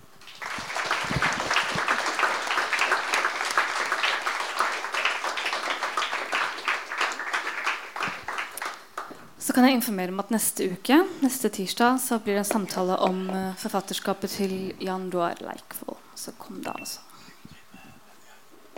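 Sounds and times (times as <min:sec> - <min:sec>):
audience applause: 0:00.0 - 0:09.2
speech: 0:09.6 - 0:17.3.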